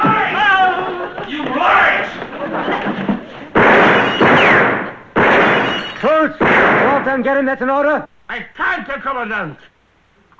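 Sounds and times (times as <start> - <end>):
laughter: 0.2 - 3.6
gunshots: 3.6 - 7.2
speech: 7.1 - 9.7.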